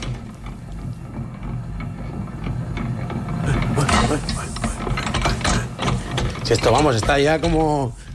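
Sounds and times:
mixer with rotating arms whirring and grinding: 0.0s - 8.1s
speech: 6.5s - 8.0s.

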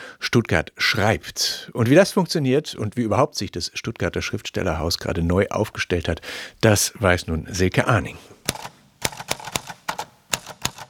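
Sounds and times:
speech: 0.3s - 8.8s
typewriter keys clacking at an opening-evening writing performance: 8.5s - 10.8s.

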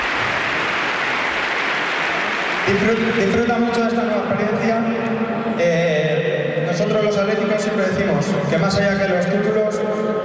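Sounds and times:
large stadium crowd applauding: 0.0s - 5.1s
speech: 2.7s - 10.2s.

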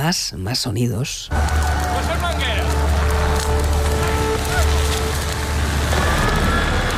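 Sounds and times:
speech: 0.0s - 2.2s
fire crackling with snaps and pops: 0.5s - 6.9s
constant roaring rush: 1.4s - 6.9s.

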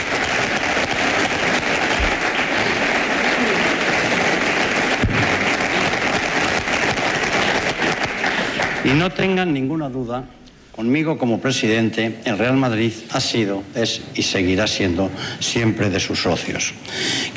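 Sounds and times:
applause: 0.0s - 9.4s
speech: 8.9s - 17.3s.

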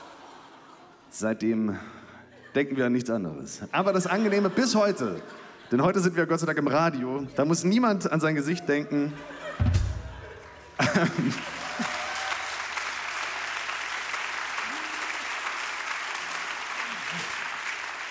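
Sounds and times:
laughter: 0.0s - 7.6s, 8.6s - 12.4s
speech: 1.1s - 2.0s, 2.6s - 9.7s, 10.8s - 11.6s
short audience applause: 10.8s - 18.1s.

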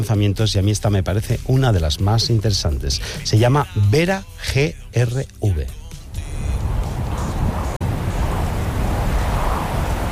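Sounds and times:
speech: 0.0s - 5.8s
ocean waves: 5.9s - 10.1s.

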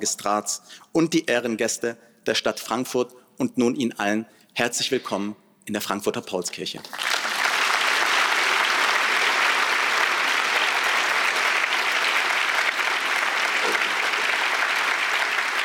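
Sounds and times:
speech: 0.0s - 7.1s
large audience applause in a reverberant hall: 6.9s - 15.6s.

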